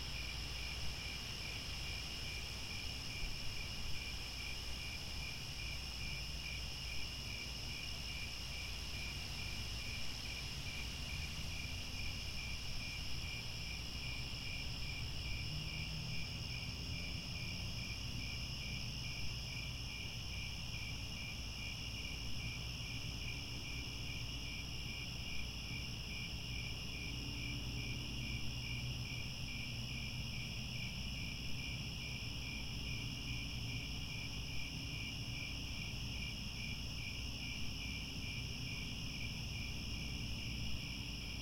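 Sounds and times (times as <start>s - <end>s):
cricket chorus chirping: 0.0s - 41.4s.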